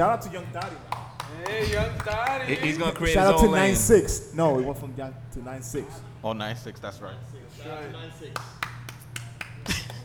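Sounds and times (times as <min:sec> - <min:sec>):
speech: 0:00.0 - 0:08.7
weak hand claps: 0:00.6 - 0:02.4, 0:08.4 - 0:10.0.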